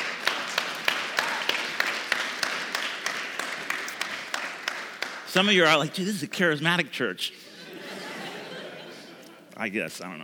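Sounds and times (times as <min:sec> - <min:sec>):
scattered applause: 0:00.0 - 0:05.6
crowd clapping in unison: 0:00.0 - 0:06.1
speech: 0:05.3 - 0:07.5, 0:09.6 - 0:10.2
laughter: 0:07.3 - 0:09.6.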